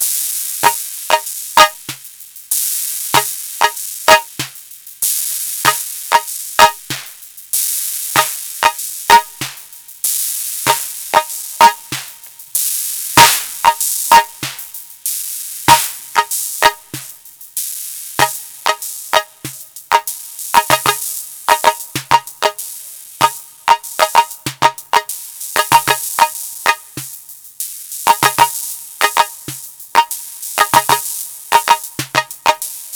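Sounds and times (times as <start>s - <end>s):
synthesized hand clap sound with DX7: 0.6s - 2.1s, 3.1s - 4.7s, 5.6s - 7.2s, 8.2s - 9.8s, 10.7s - 12.3s, 13.2s - 14.8s, 15.7s - 17.2s, 18.2s - 27.2s, 28.1s - 32.9s.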